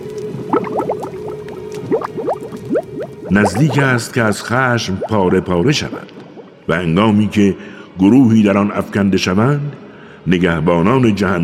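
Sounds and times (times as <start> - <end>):
liquid boiling and bubbling: 0.0 - 6.8
speech: 3.3 - 11.4.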